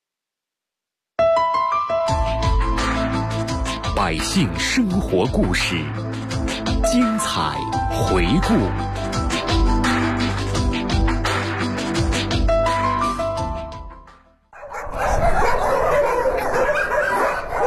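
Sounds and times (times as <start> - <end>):
short stretch of music: 1.2 - 14.5
speech: 4.1 - 6.2, 6.9 - 9.1
many dogs barking and yapping at a stray cat and dog adoption shelter in Shunyi: 14.6 - 17.6.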